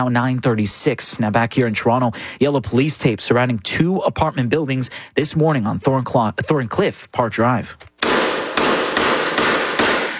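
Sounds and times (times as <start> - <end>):
speech: 0.0 - 7.9
gunshots from surveillance footage: 8.0 - 10.1.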